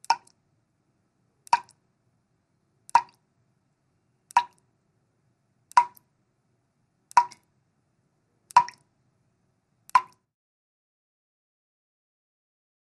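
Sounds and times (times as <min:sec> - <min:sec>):
water dripping slowly: 0:00.0 - 0:00.4, 0:01.4 - 0:01.8, 0:02.9 - 0:03.3, 0:04.3 - 0:04.7, 0:05.7 - 0:06.1, 0:07.1 - 0:07.6, 0:08.5 - 0:08.9, 0:09.9 - 0:10.3.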